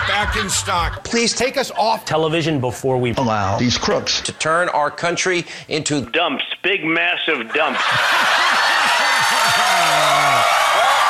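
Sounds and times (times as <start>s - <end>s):
laughter: 0.0s - 1.2s, 7.4s - 10.8s
speech: 0.2s - 8.8s
audience clapping: 7.9s - 11.0s.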